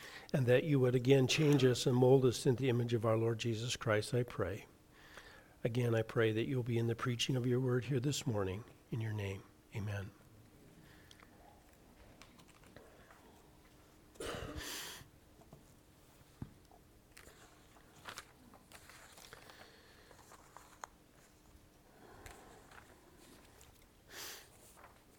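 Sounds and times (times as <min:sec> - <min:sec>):
speech: 0:00.3 - 0:04.7, 0:05.6 - 0:10.2
paper notes being shuffled: 0:11.6 - 0:13.9, 0:17.1 - 0:25.1.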